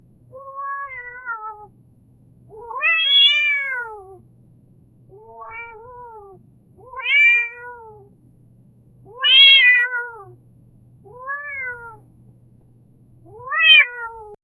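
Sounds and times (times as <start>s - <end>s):
cat calling for help: 0.3s - 1.7s, 2.5s - 4.2s, 5.1s - 8.1s, 9.0s - 10.4s, 11.0s - 12.1s, 13.2s - 14.4s.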